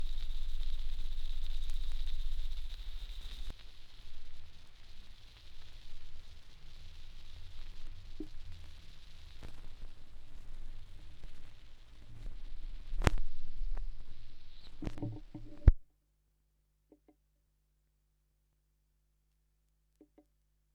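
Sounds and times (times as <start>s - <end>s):
vinyl record noise: 0.0s - 15.8s.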